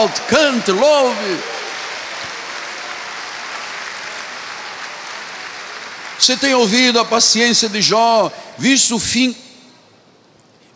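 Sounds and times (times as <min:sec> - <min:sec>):
speech: 0:00.0 - 0:01.6, 0:06.3 - 0:09.4
audience applauding: 0:00.0 - 0:06.9.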